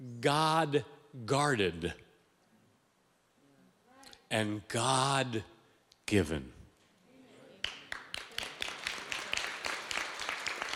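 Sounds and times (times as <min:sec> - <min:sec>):
speech: 0:00.2 - 0:02.0, 0:04.3 - 0:05.5, 0:06.1 - 0:06.6
audience clapping: 0:07.6 - 0:10.7.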